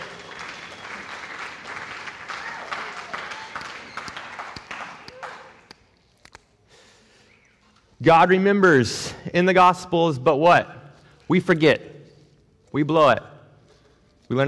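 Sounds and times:
audience applause: 0.0 - 5.7
speech: 8.0 - 11.9, 12.7 - 13.3, 14.3 - 14.4.

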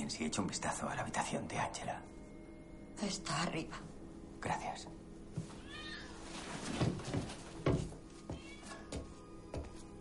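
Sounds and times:
faint hum: 0.0 - 9.9
speech: 0.1 - 2.2, 3.0 - 5.6
cats meowing: 5.5 - 6.3, 8.2 - 9.1.

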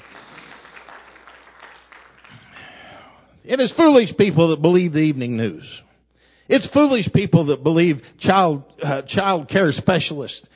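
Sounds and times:
audience hand clapping: 0.0 - 3.1
speech: 3.4 - 5.9, 6.5 - 10.5.

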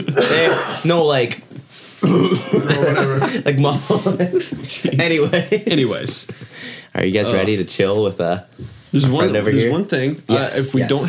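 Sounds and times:
cough: 0.0 - 0.9, 2.0 - 3.4
speech: 0.8 - 1.4, 2.1 - 11.0
throat clearing: 2.0 - 3.2
laughter: 2.3 - 6.8.

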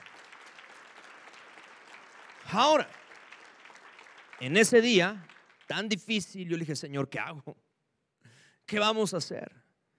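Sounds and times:
audience applauding: 0.0 - 6.2
speech: 2.5 - 3.0, 4.4 - 7.6, 8.7 - 9.6.

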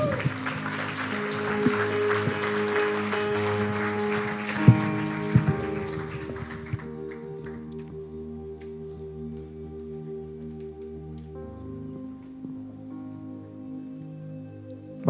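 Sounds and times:
audience applauding: 0.0 - 7.9
sustained keyboard chords: 0.0 - 15.0.

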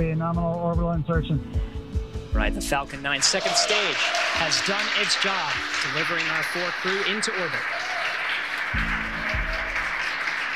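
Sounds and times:
speech: 0.0 - 8.0
crowd applauding at mission control after orbit insertion: 3.1 - 10.5.

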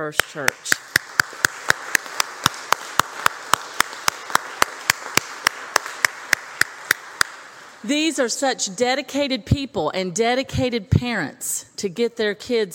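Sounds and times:
speech: 0.0 - 0.8, 7.8 - 12.7
round of applause for adult choir: 0.2 - 7.8.

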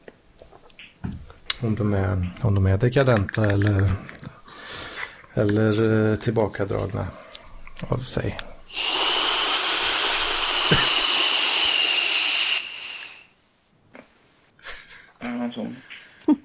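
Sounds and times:
speech: 1.6 - 4.1, 5.4 - 7.2, 7.8 - 8.8
vacuum cleaner running: 8.7 - 13.2.

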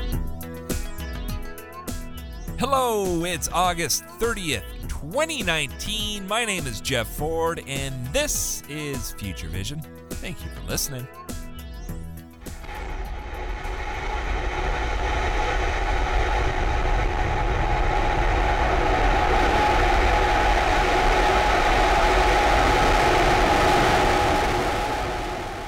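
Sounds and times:
speech: 2.6 - 11.2
SpaceX Raptor rocket engine propelling a water-tower-like test vehicle 150 meters up: 12.6 - 25.6.

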